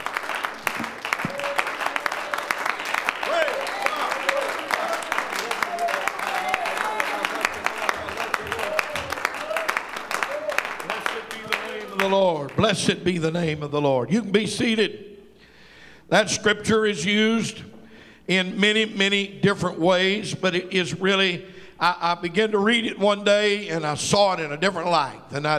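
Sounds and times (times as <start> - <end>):
congregation hand clapping in praise: 0.0 - 13.0
speech: 12.7 - 15.1, 16.1 - 17.7, 18.3 - 25.5.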